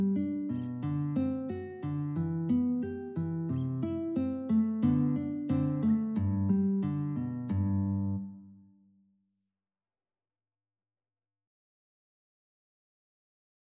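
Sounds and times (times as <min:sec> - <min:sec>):
andantino guitar piece: 0:00.0 - 0:08.8.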